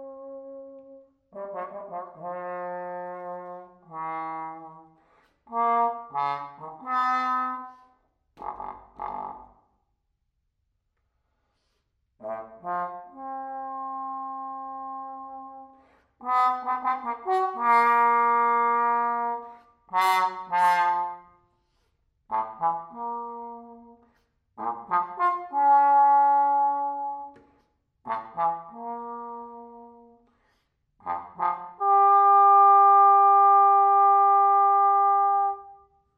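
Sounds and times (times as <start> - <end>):
trombone exercise: 1.3 - 4.8, 5.5 - 7.8, 8.4 - 9.5, 12.2 - 21.2, 22.3 - 23.9, 24.6 - 27.3, 28.0 - 30.1, 31.0 - 35.8.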